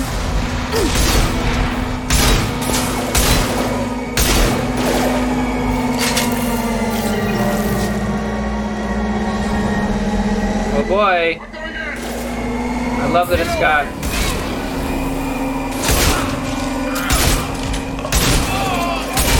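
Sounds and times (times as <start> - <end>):
shotgun blasts in a shooting gallery fired at a gunship: 0.0 - 5.2, 15.8 - 16.5, 17.1 - 19.3
steady low drone: 0.0 - 19.3
speech: 13.2 - 14.0.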